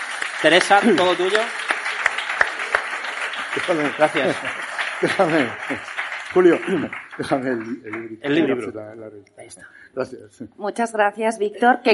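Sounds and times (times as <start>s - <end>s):
audience applause: 0.0s - 8.6s
speech: 0.4s - 1.6s, 3.6s - 11.9s.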